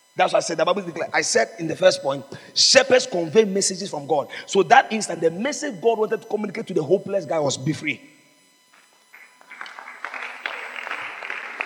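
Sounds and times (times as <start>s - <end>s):
speech: 0.2s - 8.2s
audience clapping: 9.1s - 11.6s.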